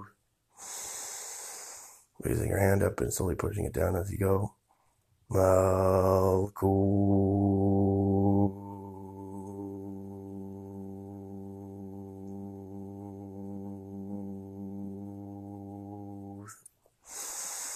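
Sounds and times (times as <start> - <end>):
deep breathing in and out: 0.6 - 2.2, 17.0 - 17.7
speech: 2.2 - 4.6, 5.3 - 7.9.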